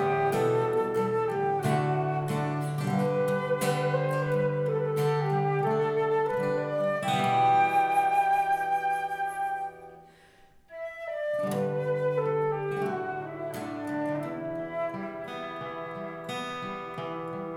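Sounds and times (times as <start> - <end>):
flute in the Llanthony Valley: 0.0 - 17.5
guitar in the Llanthony Valley: 0.0 - 17.5.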